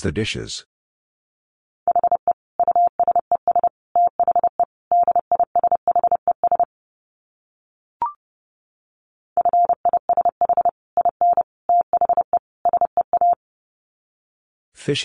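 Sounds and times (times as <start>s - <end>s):
speech: 0.0s - 0.7s, 14.8s - 15.0s
Morse code tones at 30 wpm: 1.9s - 6.7s, 9.4s - 13.4s.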